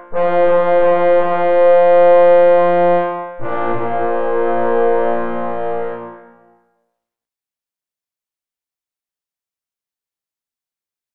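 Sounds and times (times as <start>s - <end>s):
four parforce horns playing a hunting tattoo: 0.0s - 6.6s.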